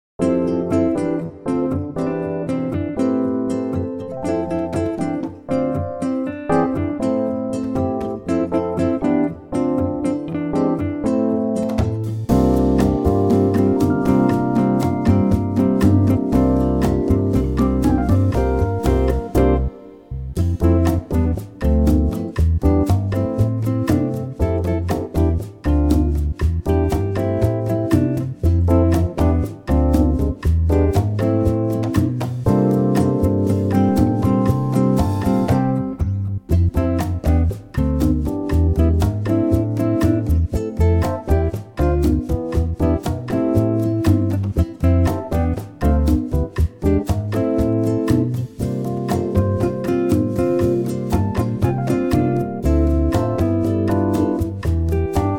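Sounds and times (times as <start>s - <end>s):
bossa nova music: 0.2s - 55.3s.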